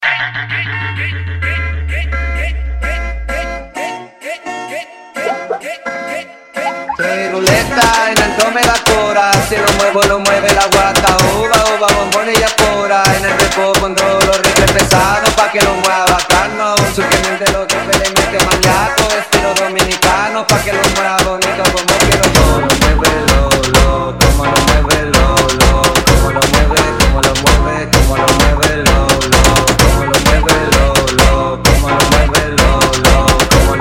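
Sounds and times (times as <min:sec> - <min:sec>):
funk music: 0:00.0 - 0:04.1, 0:05.2 - 0:33.8.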